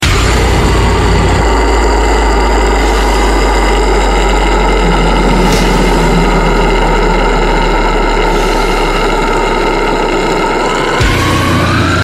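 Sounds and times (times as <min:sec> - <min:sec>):
growling: 0:00.0 - 0:12.0.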